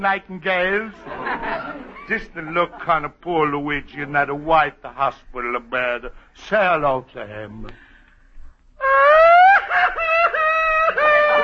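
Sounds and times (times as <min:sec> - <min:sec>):
speech: 0:00.0 - 0:07.9, 0:08.8 - 0:10.0
laughter: 0:00.9 - 0:04.3, 0:08.9 - 0:11.4
woman crying: 0:08.8 - 0:11.4.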